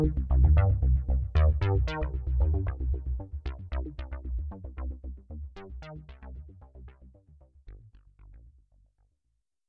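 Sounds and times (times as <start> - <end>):
synthesizer with stereo chorus: 0.0 - 8.5.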